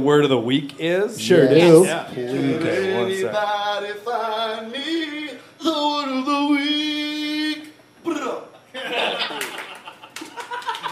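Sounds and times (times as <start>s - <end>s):
speech: 0.0s - 6.7s
laughter: 8.7s - 10.9s
golf clap: 9.3s - 10.9s.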